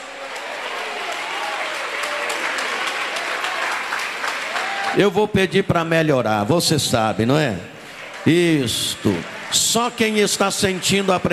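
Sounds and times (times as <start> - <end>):
audience clapping: 0.0 - 5.2, 7.7 - 11.3
speech: 5.0 - 11.3.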